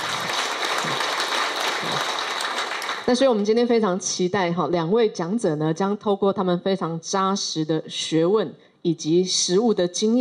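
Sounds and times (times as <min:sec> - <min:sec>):
audience clapping: 0:00.0 - 0:03.4
speech: 0:03.1 - 0:10.1.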